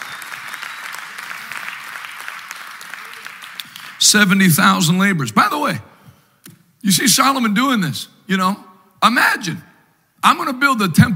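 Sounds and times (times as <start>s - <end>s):
audience clapping hands: 0.0s - 4.4s
speech: 4.0s - 6.0s, 6.8s - 11.1s.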